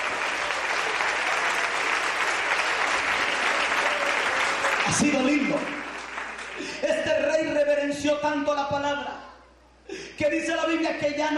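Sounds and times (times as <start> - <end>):
audience applause: 0.0 - 6.8
speech: 4.9 - 5.8, 6.6 - 9.1, 10.2 - 11.3.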